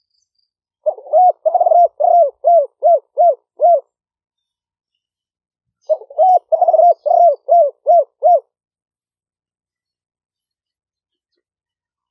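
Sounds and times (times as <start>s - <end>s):
spotted dove cooing: 0.8s - 3.9s, 5.8s - 8.5s.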